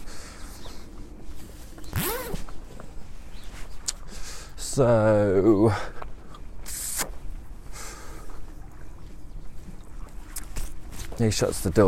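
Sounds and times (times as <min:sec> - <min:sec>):
jacket being taken off: 0:01.3 - 0:02.7
zipper: 0:01.9 - 0:02.5
speech: 0:04.8 - 0:06.0, 0:11.2 - 0:11.8.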